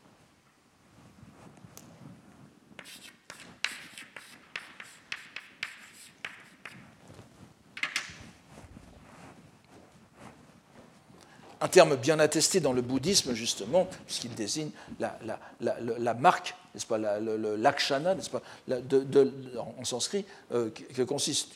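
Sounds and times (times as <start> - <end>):
writing a word on a board: 2.8 - 7.0
speech: 11.6 - 21.5.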